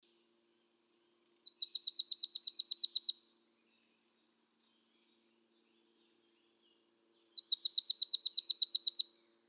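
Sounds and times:
marsh tit Poecile palustris calling: 1.4s - 3.1s, 7.3s - 9.0s.

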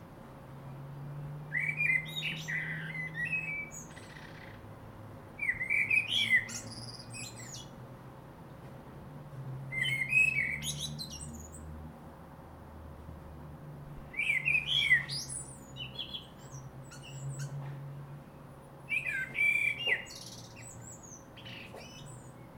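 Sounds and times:
common blackbird singing: 1.5s - 4.7s, 5.4s - 7.8s, 9.7s - 11.7s, 14.1s - 17.6s, 18.3s - 22.5s.

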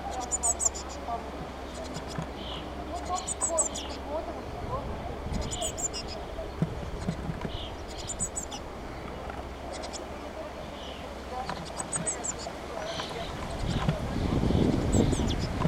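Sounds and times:
Eurasian blue tit thin calls: 0.0s - 4.4s, 5.2s - 15.6s.

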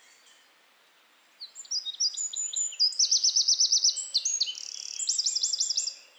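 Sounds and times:
Eurasian wren song: 1.5s - 6.0s.

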